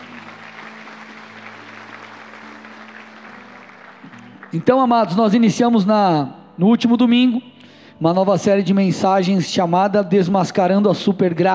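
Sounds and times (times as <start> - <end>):
audience applause: 0.0 - 5.2
speech: 4.5 - 11.5.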